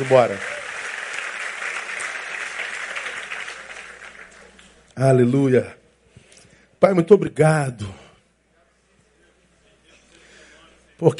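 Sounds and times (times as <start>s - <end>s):
speech: 0.0s - 0.6s, 5.0s - 5.8s, 6.8s - 8.0s, 11.0s - 11.1s
audience applause: 0.0s - 4.9s.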